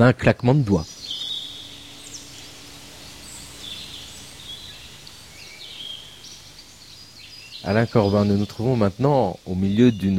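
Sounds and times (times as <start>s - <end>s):
speech: 0.0s - 0.9s, 7.7s - 10.1s
birds chirping and singing in the countryside: 0.0s - 10.1s
soft hiss: 0.0s - 10.1s.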